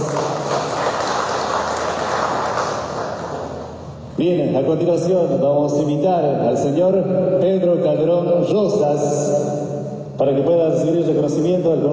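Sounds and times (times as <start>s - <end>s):
audience applause: 0.0s - 3.7s
speech: 4.2s - 9.5s, 10.2s - 11.9s.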